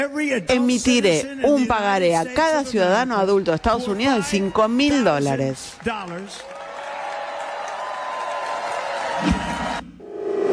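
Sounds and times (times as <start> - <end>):
speech: 0.0 - 6.6
audience applauding: 3.3 - 9.8.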